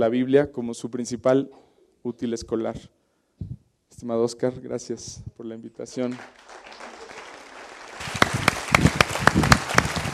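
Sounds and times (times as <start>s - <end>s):
speech: 0.0s - 6.7s
few people clapping: 6.0s - 10.1s.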